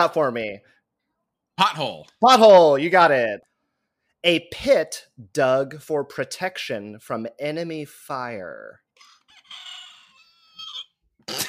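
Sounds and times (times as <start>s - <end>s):
speech: 0.0s - 0.8s, 1.6s - 3.5s, 4.2s - 8.8s
battery-powered toy rooster crowing, running down: 9.0s - 10.9s.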